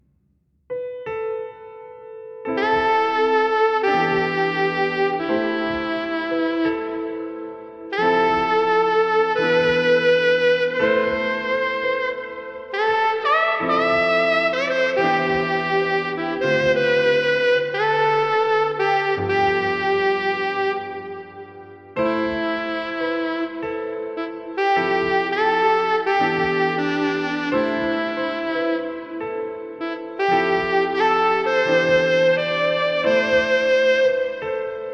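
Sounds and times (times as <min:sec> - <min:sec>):
relaxing jazz: 0:02.2 - 0:34.9.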